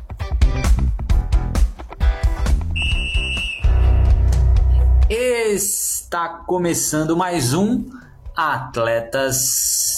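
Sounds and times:
loud music with a heavy beat: 0.0 - 5.0
referee's whistle blast: 2.8 - 4.0
speech: 5.5 - 9.9.

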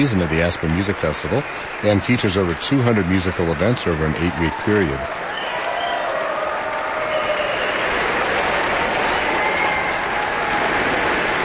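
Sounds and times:
speech: 0.0 - 5.2
audience applauding wildly after orchestral performance: 0.0 - 11.4.

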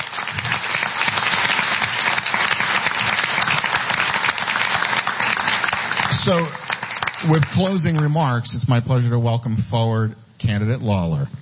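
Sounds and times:
audience applause: 0.0 - 8.4
speech: 6.3 - 6.6, 7.2 - 11.4.

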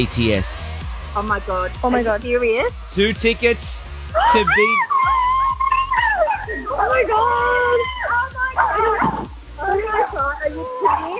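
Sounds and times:
speech: 0.0 - 4.9, 6.5 - 8.0
people talking excitedly: 0.0 - 11.1
dog barking and yipping: 4.2 - 11.1.

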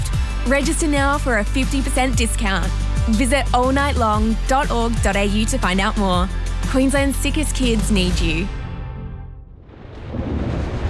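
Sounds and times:
speech: 0.5 - 8.6
rolling thunder: 9.2 - 10.8.

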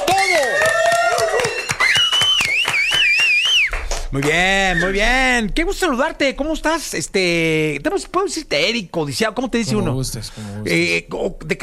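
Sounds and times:
studio audience clapping: 0.0 - 5.0
loud wavering whistle-like tones: 1.7 - 3.8, 4.6 - 5.1
speech: 4.1 - 11.6.

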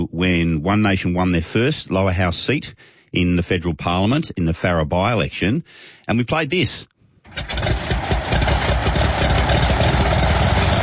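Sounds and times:
speech: 0.1 - 7.8
Cirrus small propeller plane piston engine: 7.3 - 10.8.

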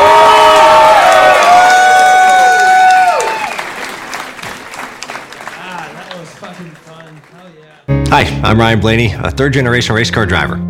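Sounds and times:
crowd cheering and whooping: 0.0 - 4.4
crowd applause: 0.0 - 7.9
speech: 8.4 - 10.6.

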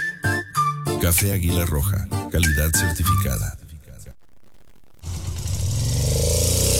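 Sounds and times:
speech: 1.0 - 3.6
Suzuki DR150 motorcycle engine starting and revving: 4.1 - 6.7.

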